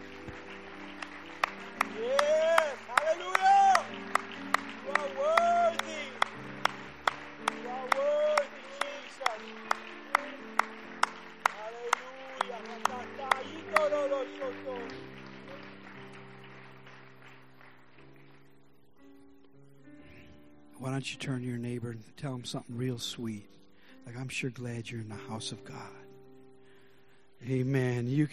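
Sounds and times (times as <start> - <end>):
audience clapping in rhythm: 0.0 - 19.0
murmur of voices: 1.4 - 15.7
speech: 21.0 - 26.0, 27.4 - 28.3.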